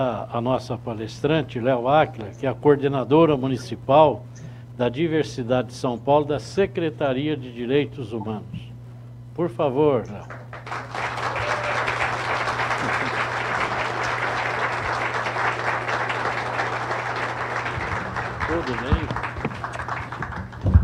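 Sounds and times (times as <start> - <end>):
speech: 0.0 - 8.7, 9.4 - 10.5, 18.5 - 19.0
audience applause: 10.3 - 20.8.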